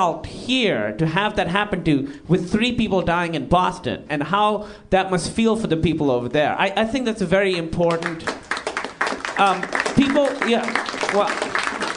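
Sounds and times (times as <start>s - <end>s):
speech: 0.0s - 8.4s, 9.4s - 11.4s
audience applause: 8.0s - 11.9s.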